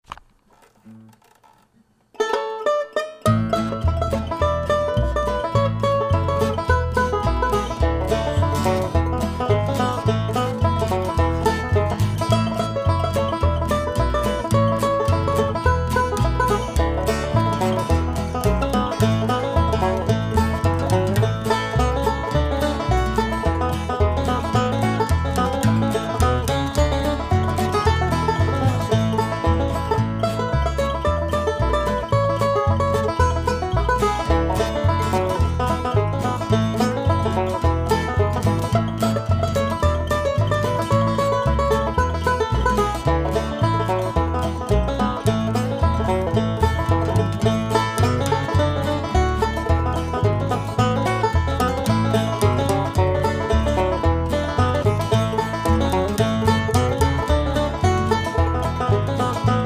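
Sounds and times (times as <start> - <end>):
banjo: 0.0 - 59.6.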